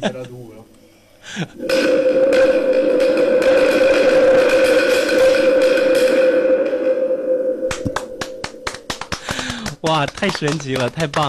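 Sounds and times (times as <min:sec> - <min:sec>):
speech: 0:00.0 - 0:02.6, 0:10.0 - 0:11.2
wind drum imitating storm wind: 0:01.5 - 0:09.4.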